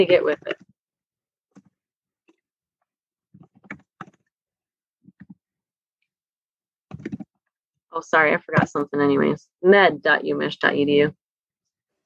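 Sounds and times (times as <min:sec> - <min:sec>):
speech: 0:00.0 - 0:00.6, 0:08.0 - 0:11.2
typing on a computer keyboard: 0:06.9 - 0:07.3.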